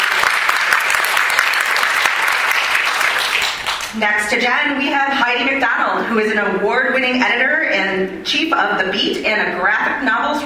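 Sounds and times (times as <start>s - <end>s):
applause for a panelist at a comics industry panel: 0.0s - 3.9s
speech: 4.0s - 10.4s.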